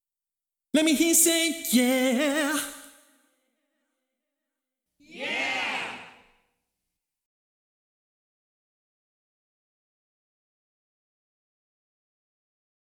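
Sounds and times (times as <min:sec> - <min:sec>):
vocal loop: 0:00.8 - 0:02.9.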